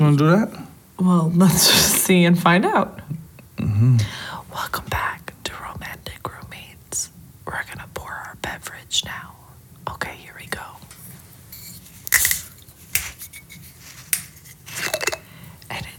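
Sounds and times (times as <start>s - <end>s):
speech: 0.0s - 3.0s, 3.8s - 5.0s
opening the top of a wine-drink bottle: 11.6s - 15.3s.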